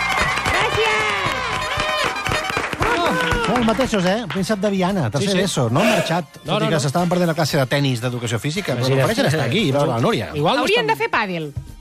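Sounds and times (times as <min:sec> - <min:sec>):
audience applause: 0:00.0 - 0:04.7
speech: 0:03.5 - 0:11.7.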